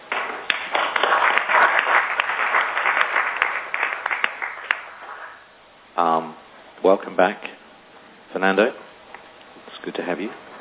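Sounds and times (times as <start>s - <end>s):
applause as a council resolution passes by acclamation: 0.0s - 5.4s
speech: 6.0s - 7.5s, 8.3s - 8.8s, 9.8s - 10.4s.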